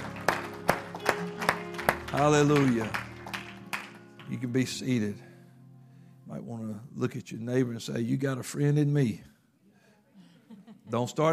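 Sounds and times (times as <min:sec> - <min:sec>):
audience applause: 0:00.0 - 0:04.3
speech: 0:02.2 - 0:03.0, 0:04.3 - 0:05.3, 0:06.3 - 0:09.3, 0:10.9 - 0:11.3
laughter: 0:10.3 - 0:11.3.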